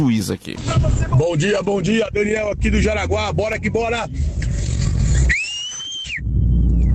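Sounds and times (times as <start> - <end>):
speech: 0.0 - 4.4
person whistling with echo: 5.2 - 6.9.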